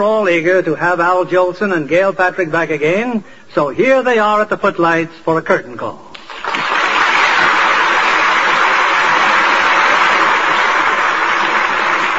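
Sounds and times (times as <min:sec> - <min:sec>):
speech: 0:00.0 - 0:06.1
crowd applauding: 0:06.2 - 0:12.1.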